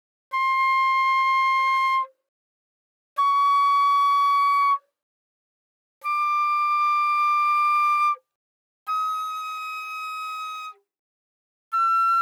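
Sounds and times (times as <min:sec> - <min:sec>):
flute without vibrato: 0:00.3 - 0:02.3, 0:03.2 - 0:04.9, 0:06.0 - 0:08.2, 0:08.9 - 0:10.9, 0:11.7 - 0:12.2.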